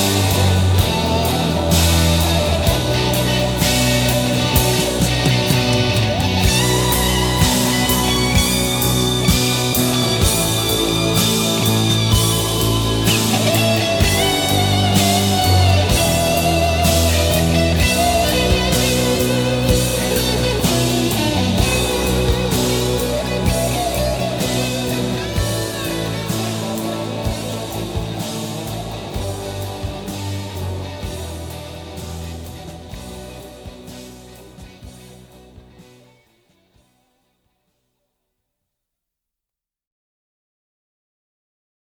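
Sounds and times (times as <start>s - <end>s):
instrumental solo studio track: 0.0s - 29.2s.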